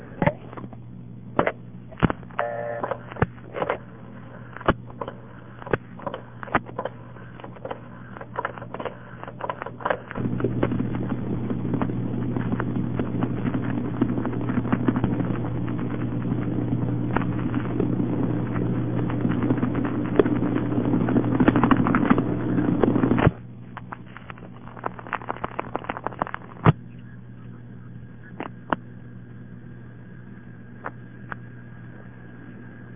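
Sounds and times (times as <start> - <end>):
steady buzzing telephone line hum: 0.0 - 32.9
telephone trunk signaling thumps over a narrow phone line: 1.4 - 3.3.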